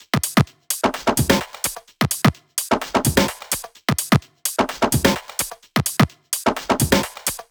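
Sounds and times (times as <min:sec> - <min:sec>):
tribal drum kit beat: 0:00.0 - 0:07.4.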